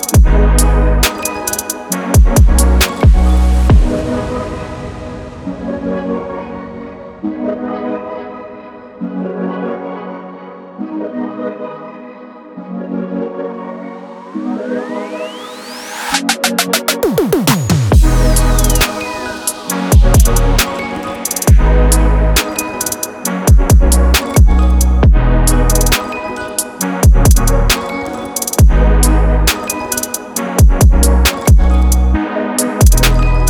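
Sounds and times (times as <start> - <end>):
instrumental music: 0.0 - 4.6, 13.9 - 33.4.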